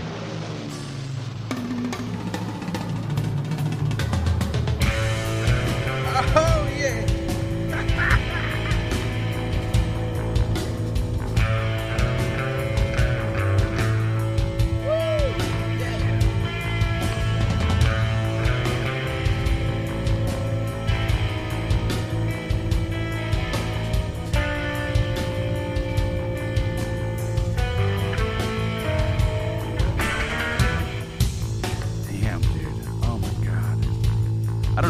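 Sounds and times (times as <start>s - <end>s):
mid-90s alternative rock song: 0.0s - 34.8s
laughter: 6.0s - 9.5s.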